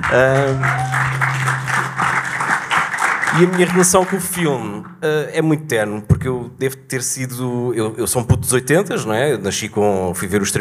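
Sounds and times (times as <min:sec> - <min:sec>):
audience clapping: 0:00.0 - 0:05.0
speech: 0:00.1 - 0:00.9, 0:03.3 - 0:10.5.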